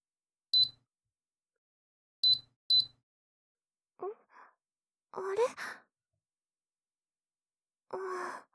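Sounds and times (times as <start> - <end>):
air conditioner switching on beeps: 2.2 - 2.9
speech: 5.2 - 5.8, 7.9 - 8.5.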